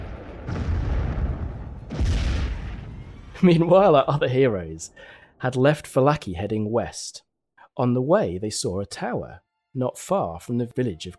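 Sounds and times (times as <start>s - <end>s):
rigged door exploding: 0.0s - 3.8s
speech: 3.4s - 11.1s.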